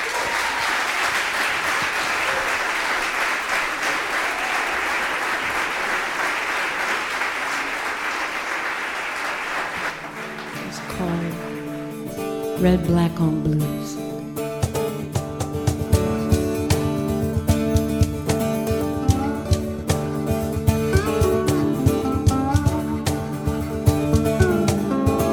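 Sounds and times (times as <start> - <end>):
audience applause welcoming a trio at a blues night: 0.0 - 11.9
instrumental notes: 10.5 - 25.3
speech: 12.6 - 14.0.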